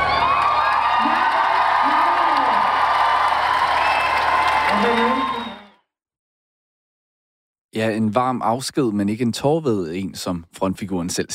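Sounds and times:
large concert crowd applauding and cheering: 0:00.0 - 0:05.8
whoops and shouts: 0:00.0 - 0:05.8
speech: 0:07.8 - 0:11.3.

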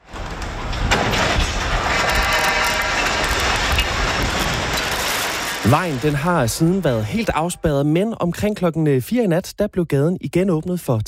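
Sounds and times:
50-metre scaffolding collapsing onto the road, tearing down power lines: 0:00.0 - 0:08.5
speech: 0:05.7 - 0:11.0.

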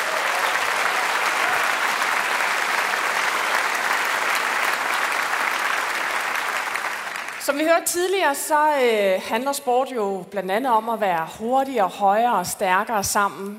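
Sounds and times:
audience applause: 0:00.0 - 0:07.5
speech: 0:07.5 - 0:13.5.

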